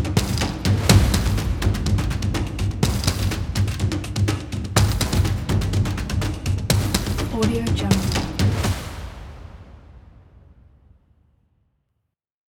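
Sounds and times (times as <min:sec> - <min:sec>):
epic action percussion: 0:00.0 - 0:09.6.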